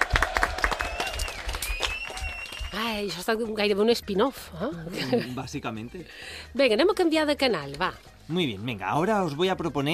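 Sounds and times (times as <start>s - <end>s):
audience applause: 0.0s - 2.8s
speech: 2.7s - 9.9s.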